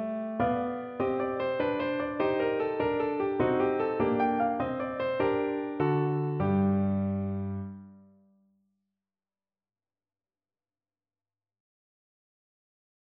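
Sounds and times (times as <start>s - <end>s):
minuet played on piano: 0.0s - 8.2s.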